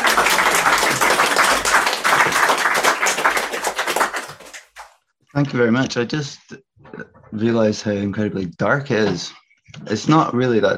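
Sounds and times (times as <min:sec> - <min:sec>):
crowd clapping: 0:00.0 - 0:05.0
speech: 0:05.4 - 0:10.7.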